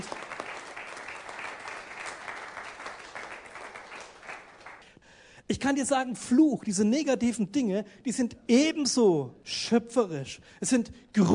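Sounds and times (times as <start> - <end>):
audience applause: 0.0 - 4.8
speech: 5.5 - 11.3.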